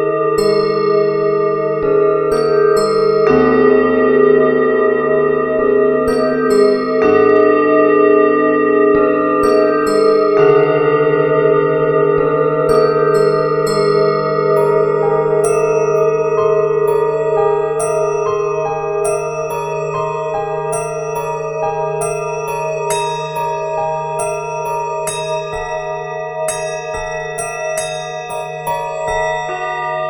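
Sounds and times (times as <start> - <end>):
bells: 0.0 - 30.0
piano: 0.0 - 30.0
Tibetan bowls ringing: 2.4 - 30.0.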